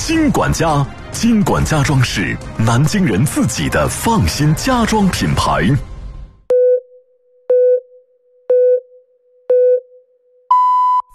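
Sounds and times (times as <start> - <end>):
speech: 0.1 - 5.9
radio hourly time signal beeps: 6.5 - 6.8, 7.5 - 7.9, 8.5 - 11.1.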